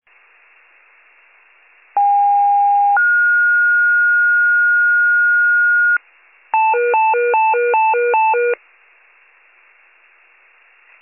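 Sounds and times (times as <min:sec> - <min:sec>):
fire pager alert: 0:02.0 - 0:06.0, 0:06.6 - 0:08.6.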